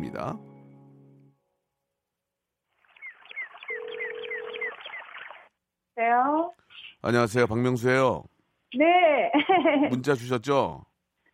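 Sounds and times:
speech: 0.1 - 0.5, 6.0 - 10.9
telephone call dial tone: 3.6 - 5.2
laughter: 9.2 - 10.0.

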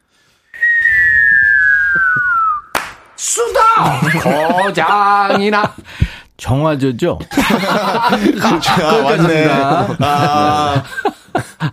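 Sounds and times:
mouth whistle imitating a firework: 0.5 - 2.8
speech: 3.4 - 11.4
laughter: 3.8 - 5.9, 7.2 - 11.7.

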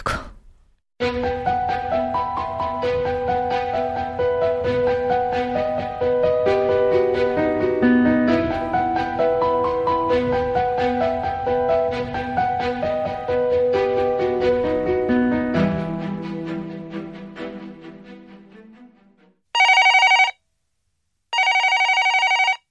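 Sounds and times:
melodic music: 1.0 - 19.3
telephone ringing: 19.6 - 20.4, 21.3 - 22.6.

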